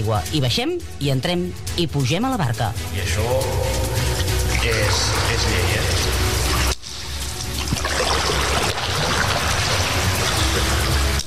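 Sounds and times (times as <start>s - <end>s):
speech: 0.0s - 4.0s, 4.6s - 6.2s
water trickling and splashing in an underground cistern: 3.4s - 11.2s.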